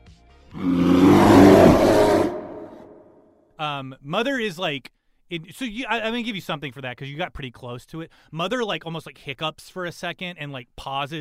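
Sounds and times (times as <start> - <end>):
voice imitating a monster's paralyzing roar: 0.5 - 3.1
speech: 3.8 - 11.2.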